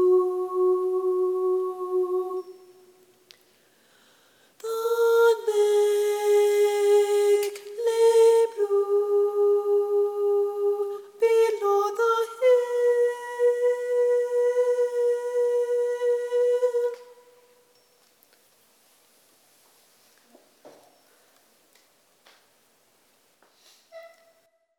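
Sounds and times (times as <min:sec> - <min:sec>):
soprano singing for Lent and Holy Week: 0:00.0 - 0:03.1, 0:04.6 - 0:17.4.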